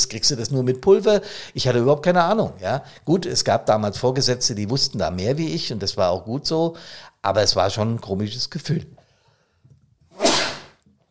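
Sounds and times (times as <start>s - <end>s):
speech: 0.1s - 9.0s
person sneezing: 10.2s - 10.8s.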